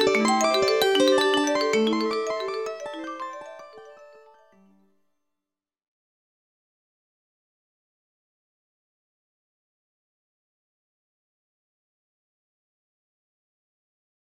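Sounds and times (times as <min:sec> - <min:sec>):
polyrhythmic fractal music: 0:00.0 - 0:04.6.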